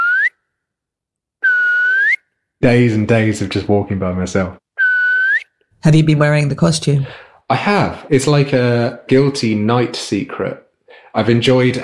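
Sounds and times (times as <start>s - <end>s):
person whistling echoing through pine forest: 0.0s - 0.4s, 1.4s - 2.2s, 4.8s - 5.6s
speech: 2.6s - 4.6s, 5.8s - 11.8s.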